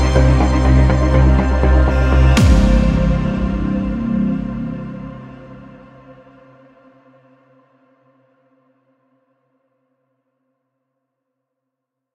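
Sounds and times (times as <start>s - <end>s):
calm music: 0.0s - 7.2s.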